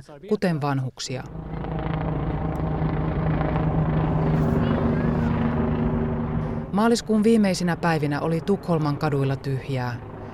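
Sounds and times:
speech: 0:00.0 - 0:01.5, 0:06.8 - 0:10.1
ambulance helicopters flying over the city: 0:01.2 - 0:10.3.

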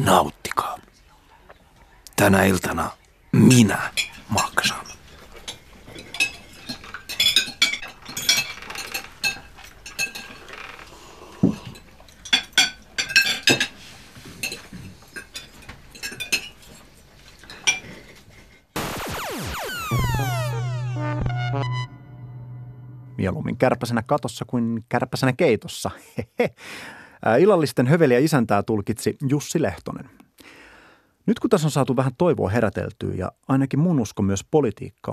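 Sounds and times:
speech: 0:00.0 - 0:00.7, 0:02.2 - 0:04.9, 0:23.2 - 0:30.6, 0:31.2 - 0:35.1
cutlery clinking and scraping against plates: 0:03.9 - 0:10.5, 0:11.4 - 0:17.9
sweeping electronic tone: 0:18.8 - 0:24.3
low hum: 0:18.8 - 0:24.5.

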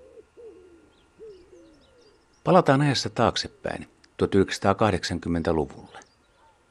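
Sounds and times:
wood pigeon cooing: 0:00.0 - 0:02.2
speech: 0:02.4 - 0:06.0.

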